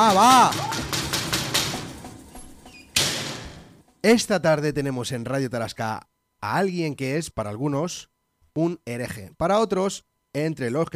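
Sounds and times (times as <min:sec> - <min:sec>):
speech: 0:00.0 - 0:00.9, 0:04.0 - 0:10.9
knocking on a door: 0:00.0 - 0:03.8.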